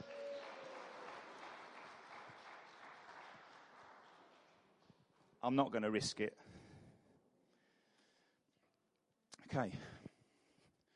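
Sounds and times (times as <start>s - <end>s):
round of applause: 0.0s - 5.1s
speech: 5.4s - 6.6s, 9.6s - 10.0s.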